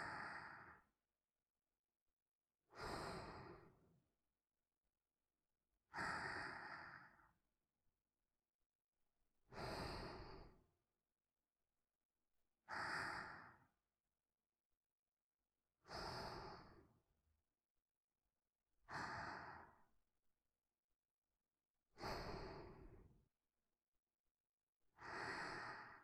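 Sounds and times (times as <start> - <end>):
person breathing in sleep: 0.0 - 0.9, 2.7 - 3.9, 5.9 - 7.4, 9.5 - 10.7, 12.6 - 13.8, 15.8 - 17.0, 18.9 - 20.0, 22.0 - 23.2, 25.0 - 26.0.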